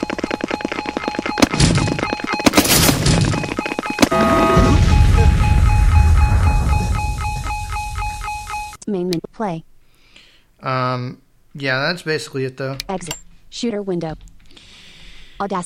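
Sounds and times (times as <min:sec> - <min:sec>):
faint electronic tones: 0:00.0 - 0:08.8
missiles fired at enemies in a shooter video game: 0:02.5 - 0:03.4, 0:04.1 - 0:07.4
speech: 0:09.4 - 0:09.7, 0:10.6 - 0:14.3, 0:15.4 - 0:15.6.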